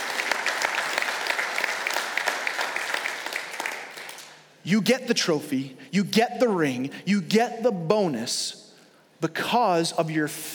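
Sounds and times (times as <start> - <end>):
audience clapping: 0.0 - 4.4
speech: 4.6 - 8.6, 9.2 - 10.5.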